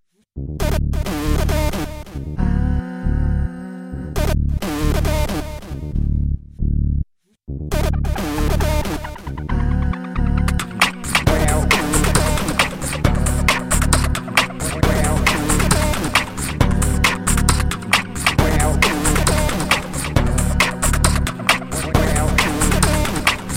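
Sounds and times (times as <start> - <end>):
vocal groove: 0.5 - 6.0, 7.6 - 23.5.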